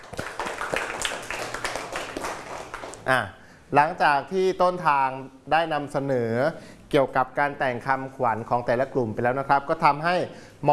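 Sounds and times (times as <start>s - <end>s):
classroom applause for classmates: 0.0s - 3.0s
speech: 3.1s - 10.7s.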